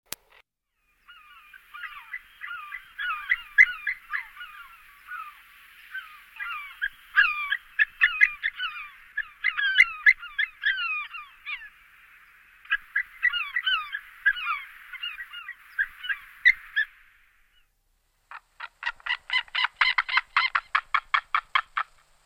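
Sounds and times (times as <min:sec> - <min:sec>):
White-tailed eagle Haliaeetus albicilla calling: 0:00.8 - 0:17.7, 0:18.3 - 0:22.0.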